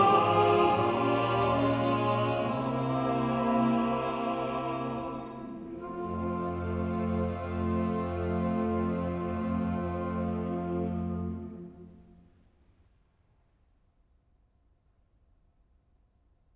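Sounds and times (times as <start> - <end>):
choir singing: 0.0 - 12.2.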